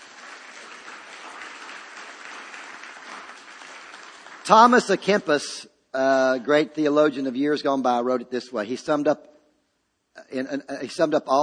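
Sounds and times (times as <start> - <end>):
audience clapping: 0.0 - 5.4
speech: 4.5 - 9.3, 10.3 - 11.4.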